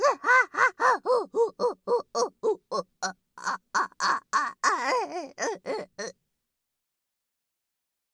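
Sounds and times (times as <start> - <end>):
person moaning: 0.0 - 6.1.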